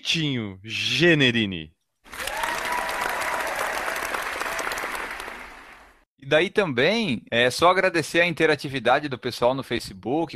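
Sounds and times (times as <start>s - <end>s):
speech: 0.0s - 1.8s, 6.3s - 10.3s
applause: 2.0s - 6.0s.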